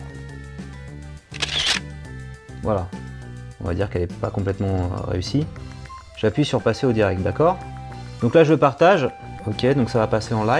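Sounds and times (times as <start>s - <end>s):
camera shutter as a photo is retaken: 1.3s - 1.9s
speech: 2.6s - 3.0s, 3.6s - 10.5s.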